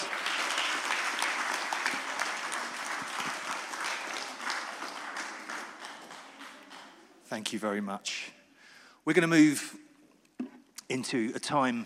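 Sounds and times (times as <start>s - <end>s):
audience applause: 0.0s - 7.0s
speech: 7.4s - 8.4s, 9.0s - 9.8s, 10.9s - 11.8s.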